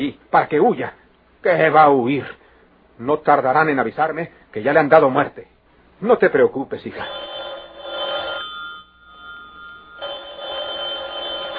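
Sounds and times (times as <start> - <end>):
speech: 0.0 - 2.4, 3.0 - 7.3
telephone ringing: 6.9 - 11.5.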